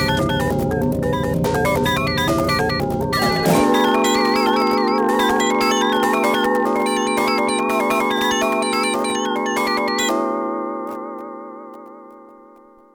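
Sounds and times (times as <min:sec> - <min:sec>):
Kawai K1 synthesizer decay effect: 0:00.0 - 0:10.3.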